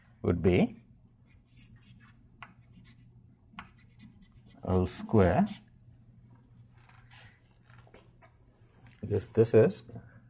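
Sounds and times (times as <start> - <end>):
speech: 0.2 - 0.8, 4.7 - 5.6, 9.0 - 10.1
pen handwriting during a lecture: 1.4 - 4.6.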